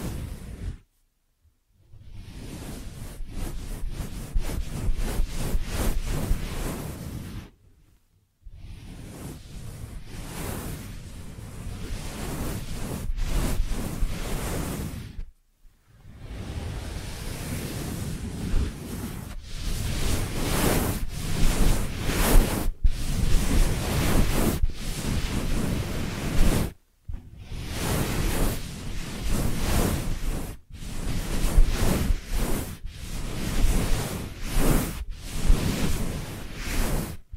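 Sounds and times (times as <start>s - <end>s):
ear massage rubbing and brushing swishes: 0.0s - 1.2s, 1.8s - 37.3s.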